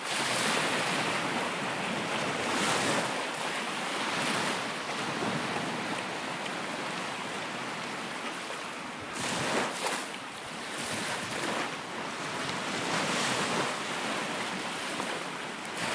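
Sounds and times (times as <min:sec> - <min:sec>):
ocean waves on a sea beach: 0:00.0 - 0:15.9.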